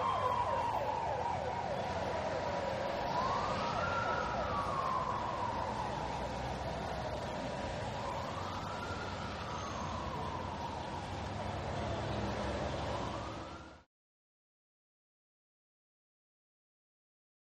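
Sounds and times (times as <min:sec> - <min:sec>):
traffic ambience: 0:00.0 - 0:13.9
wailer siren passing into traffic: 0:00.0 - 0:13.9.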